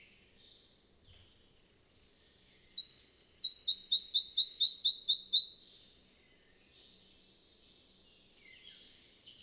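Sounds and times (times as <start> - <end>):
red-breasted flycatcher singing in the Bavarian Forest, Germany: 2.0 - 5.6.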